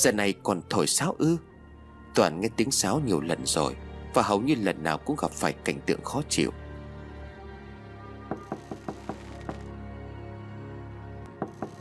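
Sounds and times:
speech: 0.0s - 1.5s, 2.2s - 6.6s
knocking on a wooden door: 8.3s - 9.7s, 11.3s - 11.7s.

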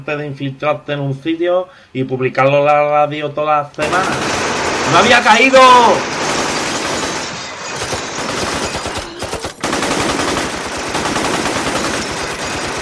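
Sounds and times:
speech: 0.0s - 6.2s
machine gun fire: 3.8s - 12.8s.

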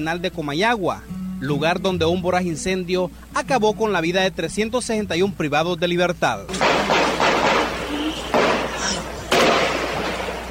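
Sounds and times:
speech: 0.0s - 6.9s
rough noisy background: 0.0s - 10.4s
indistinct voices: 6.5s - 10.0s
guards' gunshots: 6.5s - 10.4s.

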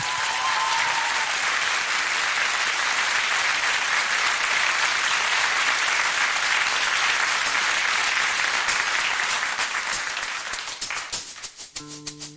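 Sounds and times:
studio audience applause: 0.0s - 11.2s.

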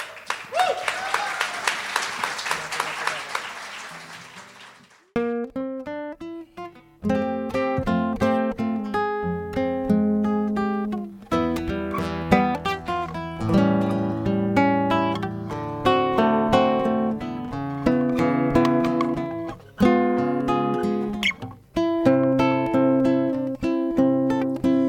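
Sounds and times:
applause welcoming a performer onto a concert stage: 0.0s - 5.1s
plucked melodic instrumental notes: 5.2s - 24.8s.

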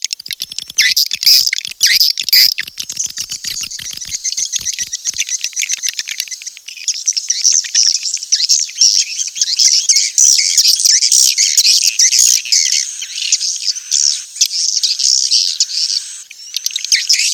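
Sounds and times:
swiftlets clicking: 0.1s - 8.6s
swiftlets twittering: 0.1s - 17.3s.

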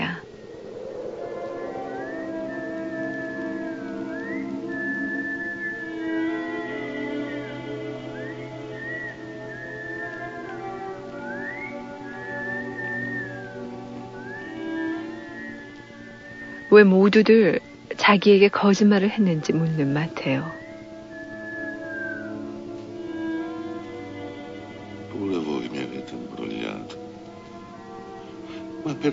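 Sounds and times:
droning musical backdrop: 0.0s - 29.1s
children whistling a tune together: 0.9s - 17.6s, 20.2s - 24.5s
speech: 16.7s - 20.6s.

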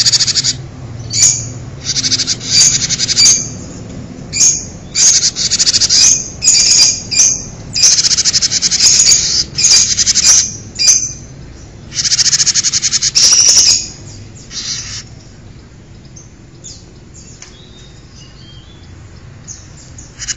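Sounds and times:
bird giving loud dry buzzy trills: 0.0s - 20.3s.

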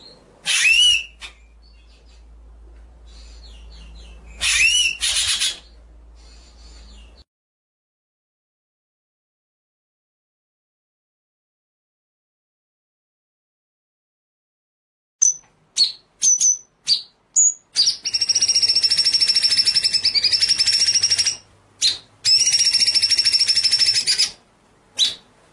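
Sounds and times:
white-rumped shama singing: 0.5s - 1.9s, 3.3s - 5.8s, 15.2s - 24.4s, 25.0s - 25.3s.

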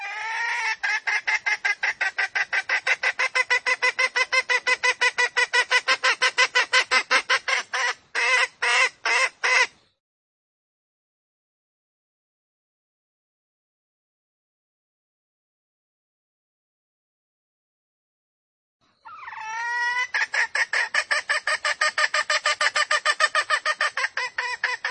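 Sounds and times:
female junglefowl squawking lure call: 0.0s - 9.8s, 19.0s - 24.8s.

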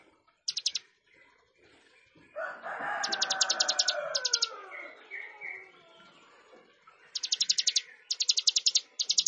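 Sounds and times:
plain prinia song: 0.5s - 0.9s, 3.0s - 5.7s, 7.1s - 9.2s.

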